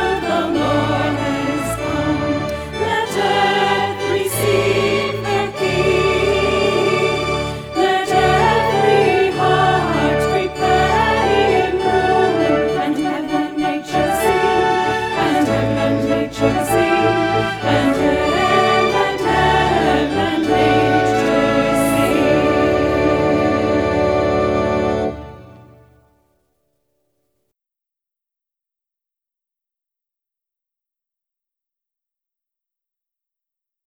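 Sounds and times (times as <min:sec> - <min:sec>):
alto voice singing a Christmas carol: 0:00.0 - 0:25.8.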